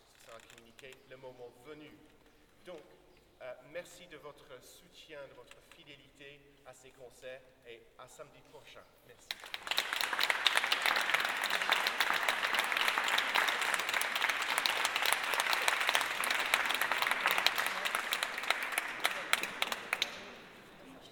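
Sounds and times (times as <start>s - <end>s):
audience applause: 9.3s - 20.8s.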